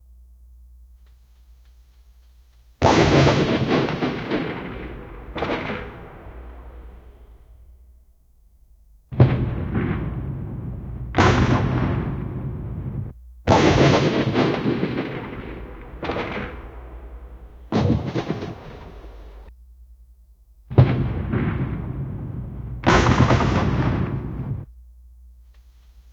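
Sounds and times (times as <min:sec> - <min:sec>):
automatic machine gun fire: 0:02.8 - 0:07.7, 0:09.2 - 0:19.5, 0:20.7 - 0:24.7.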